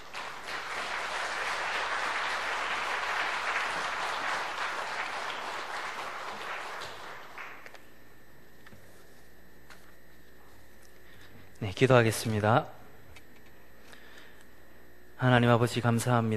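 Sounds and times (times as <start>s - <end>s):
audience applause: 0.0s - 7.7s
speech: 11.7s - 12.8s, 15.2s - 16.3s.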